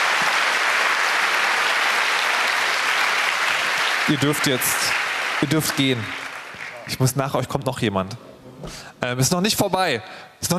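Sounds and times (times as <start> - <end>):
audience applause: 0.0 - 7.1
speech: 4.1 - 6.2, 6.9 - 10.5.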